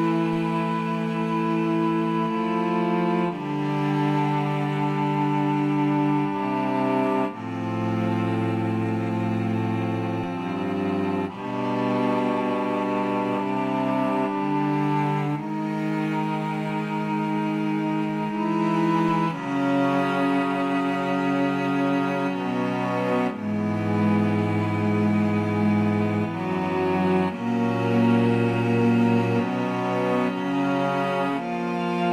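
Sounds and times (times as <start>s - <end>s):
strings: 0.0s - 32.1s.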